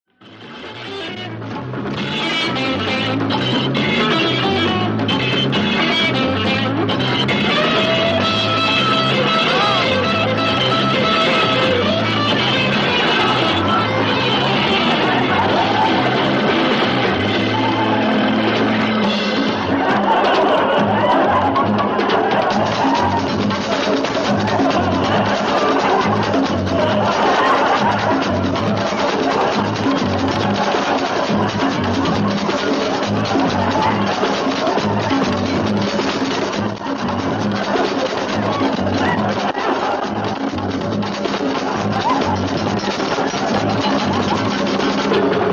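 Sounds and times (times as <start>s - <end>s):
laughter: 0.3s - 45.5s
dance music: 1.9s - 45.5s.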